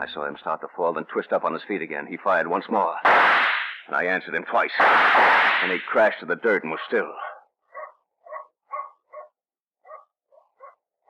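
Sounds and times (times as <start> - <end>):
speech: 0.0 - 7.2
distant dog barking at night: 6.8 - 11.0.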